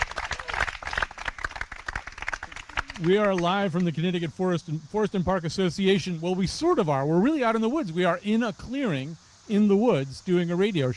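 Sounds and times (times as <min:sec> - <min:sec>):
audience applauding at an outdoor live radio show in a forest clearing: 0:00.0 - 0:03.9
speech: 0:03.0 - 0:10.9.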